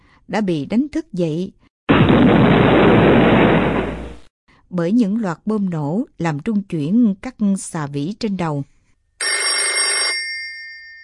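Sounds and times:
speech: 0:00.3 - 0:03.0, 0:04.7 - 0:08.7
shrill telephone bell ringing: 0:09.2 - 0:11.0.

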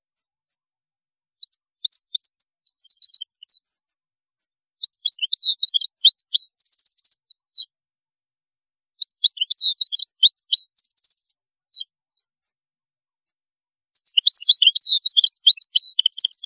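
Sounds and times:
European goldfinch song: 0:01.4 - 0:03.6, 0:04.4 - 0:07.7, 0:08.7 - 0:11.9, 0:13.9 - 0:16.4.

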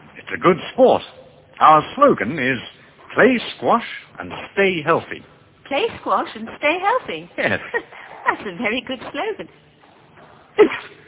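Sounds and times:
speech: 0:00.3 - 0:09.7
sneeze: 0:10.6 - 0:11.0.

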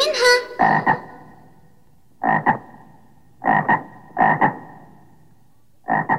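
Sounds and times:
frog croaking in throaty double-pulsed calls: 0:00.0 - 0:01.6, 0:02.2 - 0:05.2, 0:05.8 - 0:06.1.

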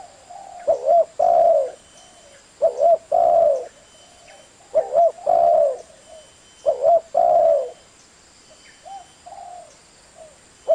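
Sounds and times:
Spotted Dove cooing: 0:00.0 - 0:07.8, 0:08.8 - 0:10.7.

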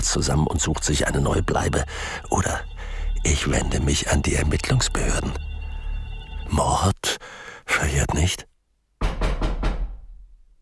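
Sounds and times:
speech: 0:00.0 - 0:05.5, 0:06.5 - 0:08.5
knocking on a door: 0:09.0 - 0:10.1.

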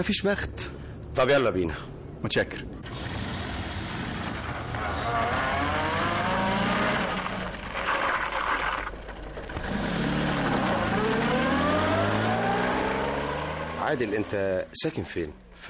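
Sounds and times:
speech: 0:00.0 - 0:03.2, 0:13.9 - 0:15.6
car engine revving while being driven: 0:02.7 - 0:08.7, 0:09.5 - 0:14.7.

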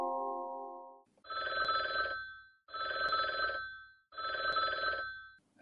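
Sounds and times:
telephone ringing: 0:01.3 - 0:05.4.

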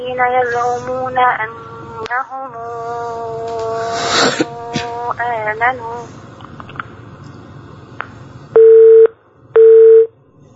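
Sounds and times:
speech: 0:00.0 - 0:04.6, 0:05.2 - 0:06.2
faint noise: 0:00.0 - 0:10.5
telephone busy tone after a dropped call on a call-in show: 0:08.6 - 0:10.1.

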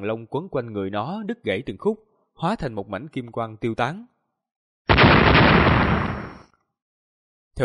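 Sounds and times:
speech: 0:00.0 - 0:04.1
repeated explosion blasts: 0:04.9 - 0:06.4.

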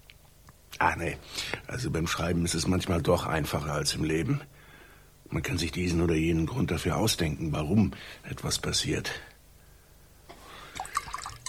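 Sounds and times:
speech: 0:00.8 - 0:04.6, 0:05.3 - 0:09.3
wine pouring into a glass: 0:10.7 - 0:11.4.

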